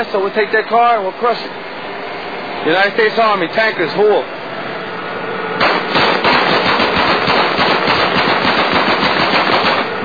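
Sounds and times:
speech: 0:00.0 - 0:01.7, 0:02.6 - 0:04.4
machine gun firing at a vehicle: 0:05.6 - 0:09.9.

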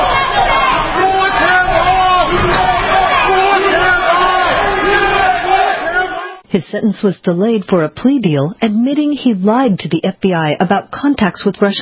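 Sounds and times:
protesters chanting outside courthouse: 0:00.0 - 0:06.4
supporters shouting outside courthouse: 0:00.0 - 0:06.4
speech: 0:06.7 - 0:11.7.

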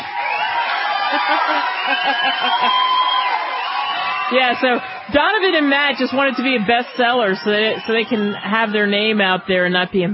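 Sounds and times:
crowd clapping: 0:00.0 - 0:09.9
scattered laughter: 0:01.1 - 0:02.8
speech: 0:01.3 - 0:02.9, 0:04.3 - 0:10.1.

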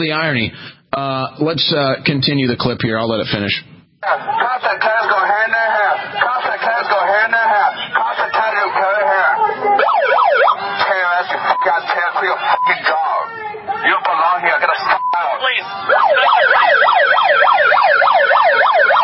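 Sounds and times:
speech: 0:00.0 - 0:05.2
people shouting at a protest outside a Planned Parenthood: 0:04.1 - 0:19.0
amplified noise device siren-like wail at a protest outside a Planned Parenthood: 0:09.2 - 0:13.3, 0:14.8 - 0:19.0.

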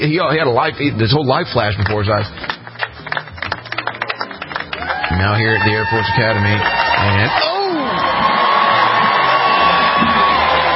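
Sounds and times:
speech: 0:00.0 - 0:02.5, 0:05.1 - 0:07.5
crowd cheering: 0:03.8 - 0:10.7.

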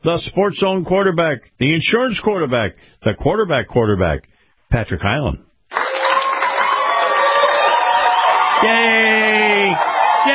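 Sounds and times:
speech: 0:00.0 - 0:05.8, 0:08.6 - 0:10.3
crowd cheering and applauding: 0:05.7 - 0:10.3.

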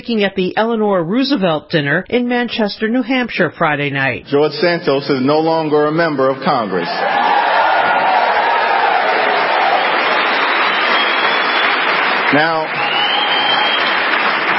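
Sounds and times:
speech: 0:00.0 - 0:07.4, 0:12.3 - 0:12.8
audience applause: 0:06.8 - 0:14.5.

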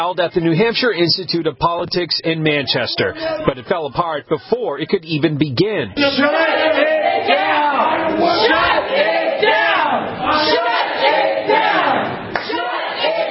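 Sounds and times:
speech: 0:00.0 - 0:07.4
crowd chanting: 0:06.0 - 0:13.2.

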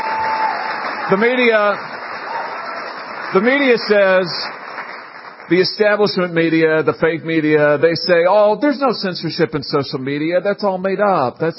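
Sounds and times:
audience applause: 0:00.0 - 0:06.1
speech: 0:01.1 - 0:01.9, 0:03.3 - 0:04.6, 0:05.5 - 0:11.5.

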